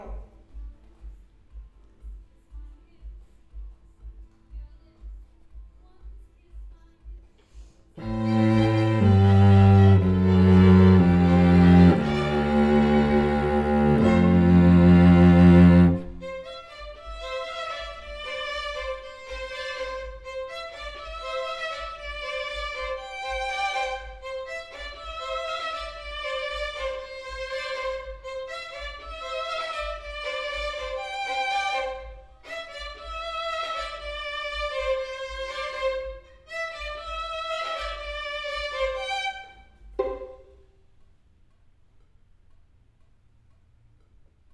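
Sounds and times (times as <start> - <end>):
cello: 8.0 - 40.6.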